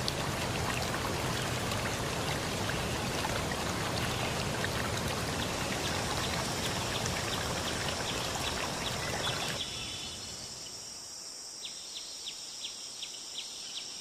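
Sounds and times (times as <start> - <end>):
dense steady rushing like running water or rain: 0.0 - 9.7.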